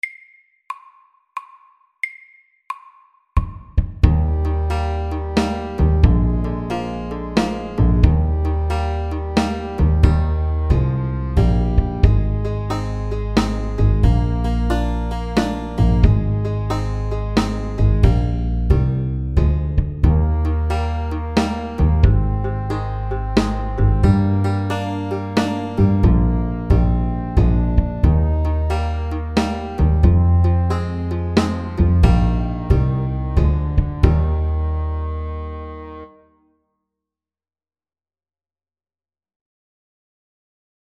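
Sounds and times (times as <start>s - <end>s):
slow country shuffle at 90 bpm: 4.1s - 35.0s.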